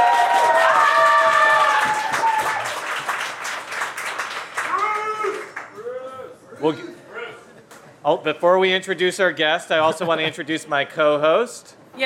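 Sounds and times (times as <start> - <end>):
whoops and shouted voices: 0.0 - 2.7, 4.7 - 6.1
live audience clapping: 0.0 - 5.8
speech: 6.6 - 6.9, 8.0 - 12.0.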